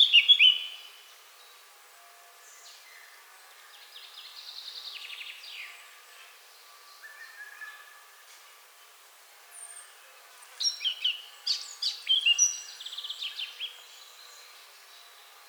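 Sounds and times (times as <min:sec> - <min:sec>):
Eurasian blackcap Sylvia atricapilla song: 0:00.0 - 0:00.9, 0:10.6 - 0:13.8.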